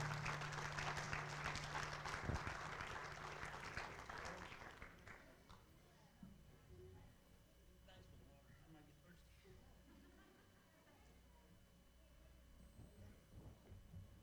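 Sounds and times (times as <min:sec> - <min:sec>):
low hum: 0:00.0 - 0:04.3
audience clapping: 0:00.0 - 0:05.6.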